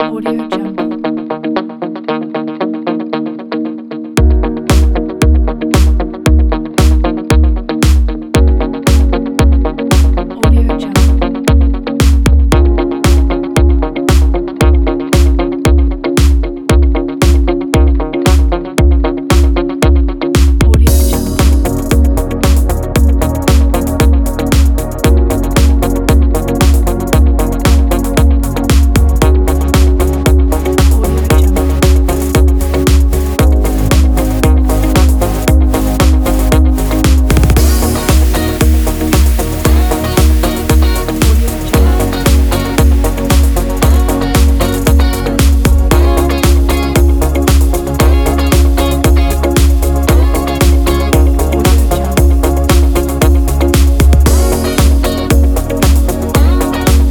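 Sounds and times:
smooth motivational music: 0:00.0 - 0:57.1.

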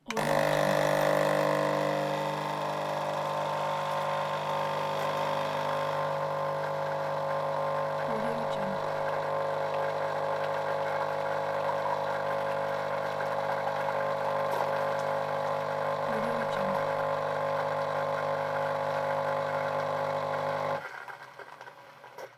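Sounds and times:
small coffee maker: 0:00.0 - 0:22.3.

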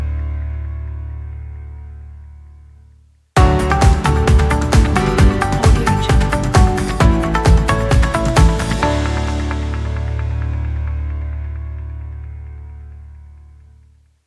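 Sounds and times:
logo opener jingle: 0:03.4 - 0:11.2.

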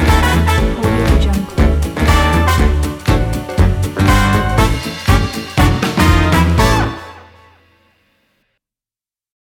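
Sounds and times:
jazz band playing swing: 0:00.0 - 0:07.3.

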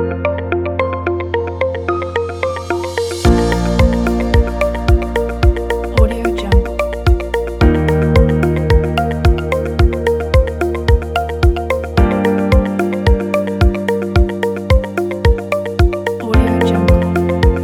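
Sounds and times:
soft inspiring commercial corporate music: 0:00.0 - 0:17.6.

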